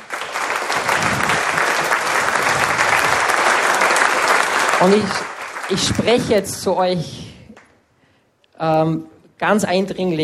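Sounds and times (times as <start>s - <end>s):
audience applause: 0.0s - 6.4s
speech: 4.8s - 7.2s, 8.6s - 10.2s.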